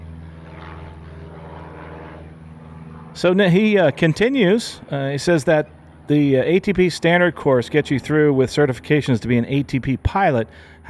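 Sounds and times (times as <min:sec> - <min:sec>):
Piper Arrow single-engine propeller airplane flying by: 0:00.0 - 0:10.8
speech: 0:03.2 - 0:10.8.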